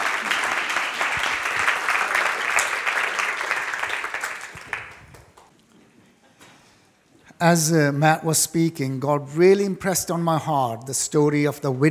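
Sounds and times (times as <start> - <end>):
audience applause: 0.0 - 5.5
speech: 7.4 - 11.8.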